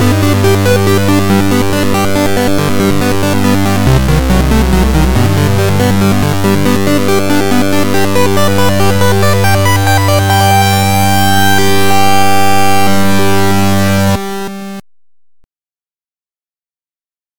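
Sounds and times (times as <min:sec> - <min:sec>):
diminished arpeggio: 0:00.0 - 0:14.4.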